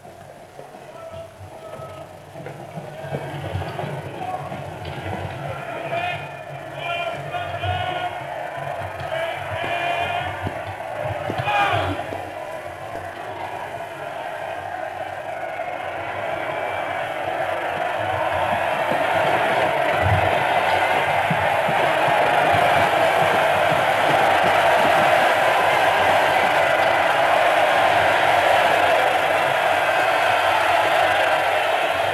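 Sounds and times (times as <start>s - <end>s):
large street crowd cheering and shouting at royal arrival: 0.6s - 32.1s.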